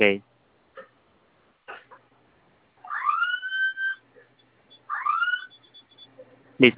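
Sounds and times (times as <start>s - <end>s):
fire alarm panel whooping electronic tones: 2.8s - 4.1s, 4.7s - 6.1s.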